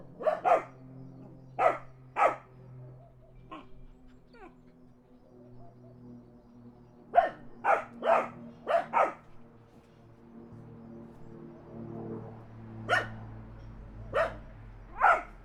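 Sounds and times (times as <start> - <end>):
dogs barking in the country: 0.1 - 0.8, 1.6 - 2.5, 7.1 - 9.3, 12.8 - 13.3, 14.1 - 15.4
car passing: 12.2 - 15.4.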